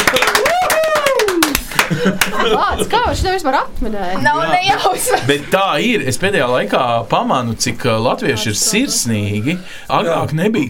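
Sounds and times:
people clapping: 0:00.0 - 0:02.9
laughter: 0:01.5 - 0:03.2, 0:04.6 - 0:05.8
speech: 0:02.0 - 0:10.6.

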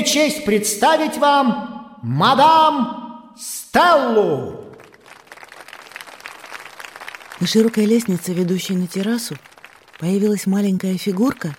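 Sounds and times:
speech: 0:00.1 - 0:04.6, 0:07.4 - 0:11.5
audience applauding: 0:04.7 - 0:11.5.

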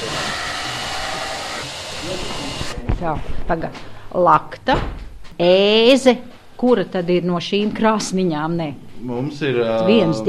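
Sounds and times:
knife being sharpened on grinding machine: 0:00.0 - 0:02.8
speech: 0:02.1 - 0:10.2.

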